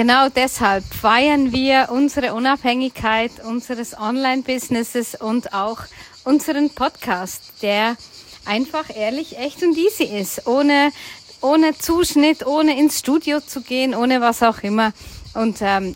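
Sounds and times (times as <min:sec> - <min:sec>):
cicadas buzzing in southern France: 0:00.0 - 0:15.9
speech: 0:00.0 - 0:15.9.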